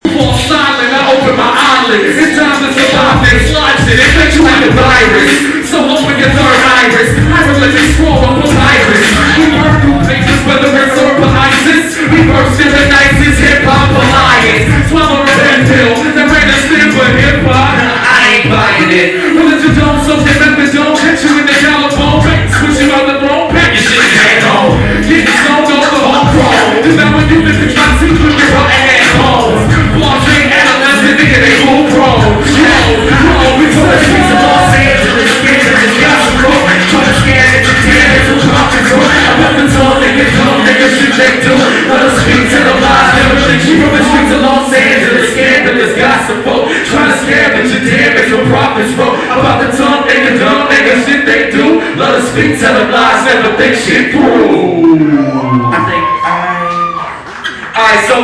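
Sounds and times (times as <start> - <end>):
live hip hop music: 0.0 - 58.2.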